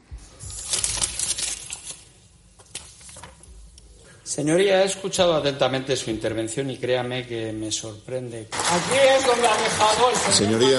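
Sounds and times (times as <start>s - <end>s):
sheet of paper crumpled at a parliament speaker's lectern: 0.4s - 3.4s
speech: 4.3s - 10.7s.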